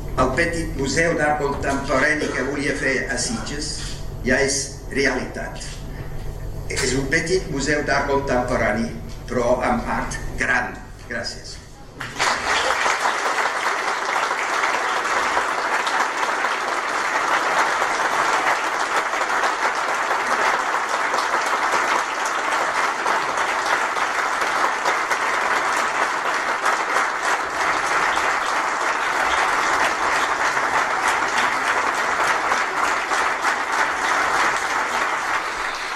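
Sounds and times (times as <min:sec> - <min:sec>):
speech: 0:00.2 - 0:05.8, 0:06.7 - 0:11.6
audience applause in a hall: 0:12.0 - 0:35.9.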